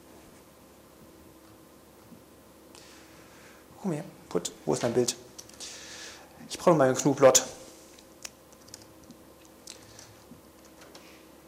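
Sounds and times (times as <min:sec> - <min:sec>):
low steady hiss: 0:00.0 - 0:11.4
speech: 0:03.8 - 0:05.7, 0:06.5 - 0:07.5
typing on a computer keyboard: 0:08.5 - 0:08.9.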